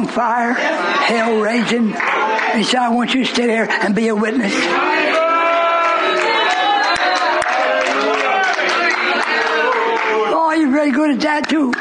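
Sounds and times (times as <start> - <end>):
many voices singing or chanting together: 0.0 - 10.2
speech: 0.1 - 5.1, 10.8 - 11.8
audience clapping hands: 1.6 - 3.2, 4.9 - 11.8.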